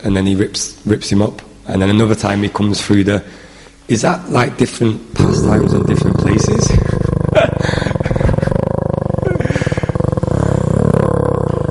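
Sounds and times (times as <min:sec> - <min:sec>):
speech: 0:00.0 - 0:06.8
man imitating a growl: 0:05.2 - 0:11.7.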